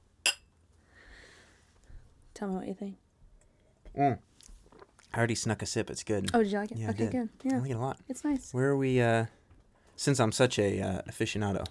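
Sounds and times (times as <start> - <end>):
glasses clinking in a toast: 0.2 - 0.5
speech: 2.4 - 3.0, 4.0 - 4.3, 5.2 - 9.4, 10.0 - 11.6.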